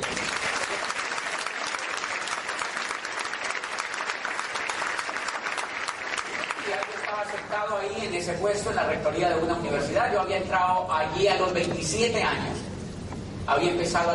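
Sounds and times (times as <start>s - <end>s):
crowd applause: 0.0s - 7.6s
speech: 7.5s - 12.7s, 13.5s - 14.1s.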